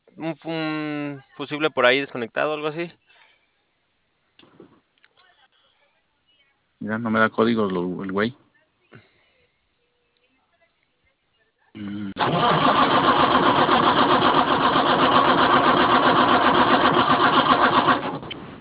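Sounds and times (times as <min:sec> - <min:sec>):
speech: 0:00.2 - 0:03.1, 0:06.8 - 0:09.0, 0:11.8 - 0:13.2
car engine starter cranking but failing to start: 0:12.2 - 0:18.5.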